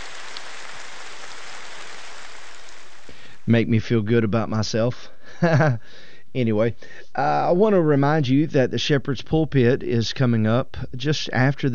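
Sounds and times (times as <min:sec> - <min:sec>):
audience applause: 0:00.0 - 0:03.1
speech: 0:03.5 - 0:11.7.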